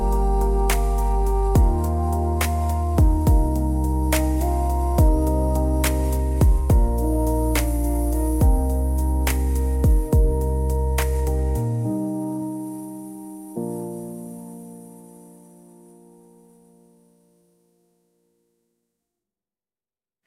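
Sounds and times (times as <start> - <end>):
person singing birthday name songs: 0.0 - 11.8.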